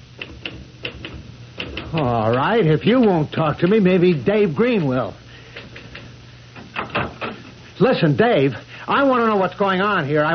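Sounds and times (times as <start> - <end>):
faint hum: 0.0 - 10.3
typewriter key strikes: 0.2 - 3.2
speech: 1.9 - 5.2, 7.8 - 10.3.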